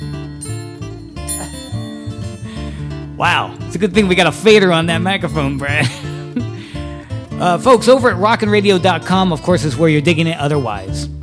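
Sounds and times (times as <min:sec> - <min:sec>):
multiple bells ringing: 0:00.0 - 0:03.1
speech: 0:03.2 - 0:06.1, 0:07.4 - 0:11.2.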